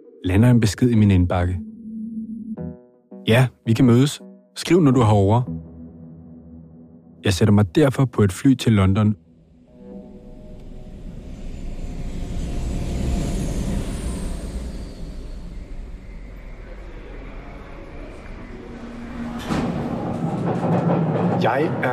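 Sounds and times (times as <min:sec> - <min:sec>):
speech: 0:00.2 - 0:01.7, 0:03.2 - 0:05.6, 0:07.2 - 0:09.2
London Underground train ride: 0:09.7 - 0:21.9.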